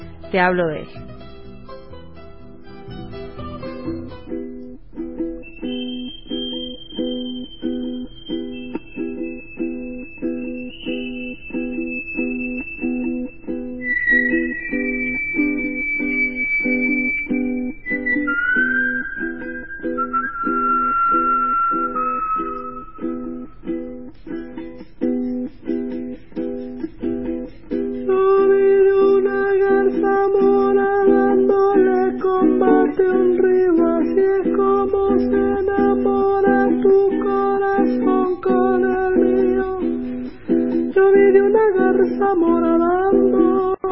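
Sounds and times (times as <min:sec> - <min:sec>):
Venezuelan song sung to the full moon: 0:00.0 - 0:43.8
speech: 0:00.3 - 0:01.1.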